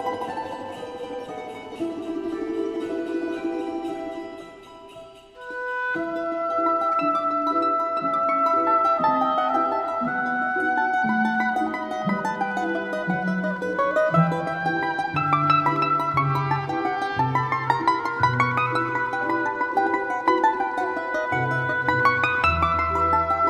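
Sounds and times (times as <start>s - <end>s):
balalaika orchestra playing: 0.0s - 23.4s.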